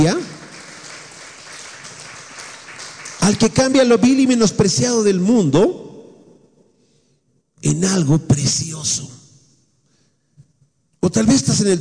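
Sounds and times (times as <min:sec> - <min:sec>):
speech: 0:00.0 - 0:00.4, 0:03.3 - 0:05.8, 0:07.6 - 0:09.2, 0:11.0 - 0:11.7
audience applauding: 0:00.0 - 0:04.3.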